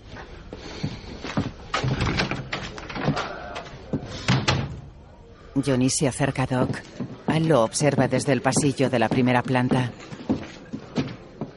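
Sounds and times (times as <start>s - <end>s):
door opening or closing: 1.7s - 4.8s
speech: 5.6s - 10.2s.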